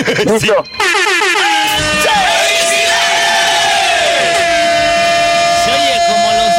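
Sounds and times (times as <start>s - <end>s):
speech: 0.2s - 1.4s
short car horn honks: 0.8s - 3.1s, 3.9s - 6.5s.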